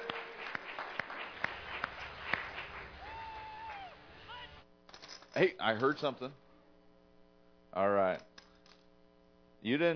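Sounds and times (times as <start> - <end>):
audience applause: 0.0 - 4.6
speech: 5.4 - 6.4, 7.7 - 8.3, 9.6 - 9.9.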